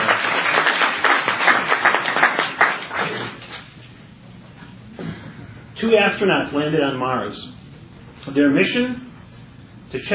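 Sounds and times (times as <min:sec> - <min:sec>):
audience applause: 0:00.0 - 0:03.4
speech: 0:05.9 - 0:07.6, 0:08.2 - 0:09.0, 0:09.9 - 0:10.1.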